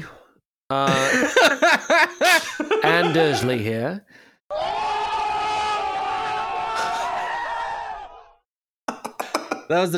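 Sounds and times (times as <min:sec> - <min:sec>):
speech: 0:00.7 - 0:04.8, 0:09.7 - 0:09.9
laughter: 0:00.9 - 0:03.6
crowd cheering sound effect: 0:04.5 - 0:08.4.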